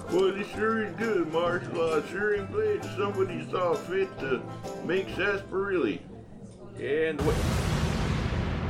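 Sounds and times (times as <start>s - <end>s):
speech: 0.1s - 6.1s, 6.8s - 7.6s
radio drama explosion sound effect: 7.2s - 8.6s.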